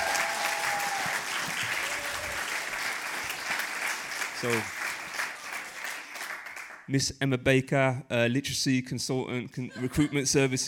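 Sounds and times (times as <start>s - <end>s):
round of applause: 0.0s - 6.9s
speech: 4.4s - 4.8s, 6.9s - 10.6s.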